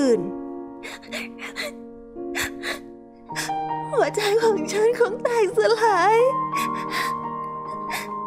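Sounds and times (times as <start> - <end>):
speech: 0.0 - 1.8, 3.3 - 7.1
woman crying bitterly, sobbing: 0.8 - 5.4, 6.6 - 8.2.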